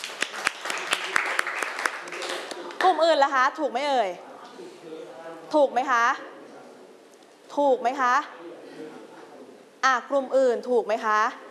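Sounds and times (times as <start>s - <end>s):
students clapping in a classroom: 0.0s - 3.0s
speech: 2.9s - 6.3s, 7.5s - 8.9s, 9.8s - 11.4s.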